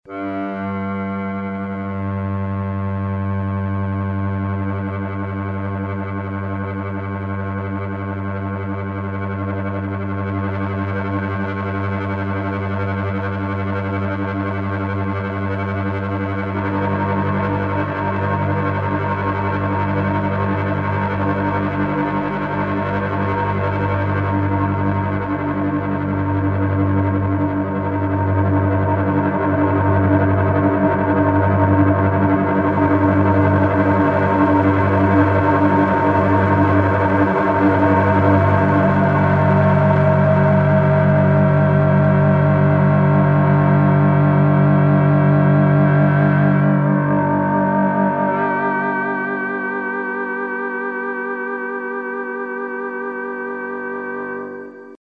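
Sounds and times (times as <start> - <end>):
cello: 0.0 - 54.9.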